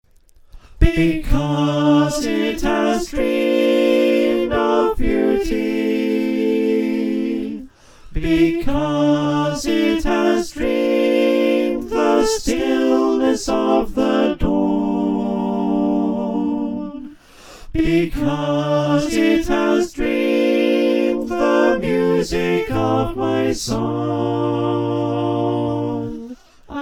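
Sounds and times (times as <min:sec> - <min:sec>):
SATB choir singing in F: 0:00.8 - 0:26.8.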